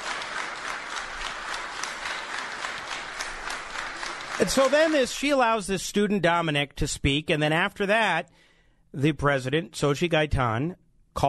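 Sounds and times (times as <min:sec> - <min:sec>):
crowd clapping: 0:00.0 - 0:05.6
speech: 0:04.4 - 0:11.2.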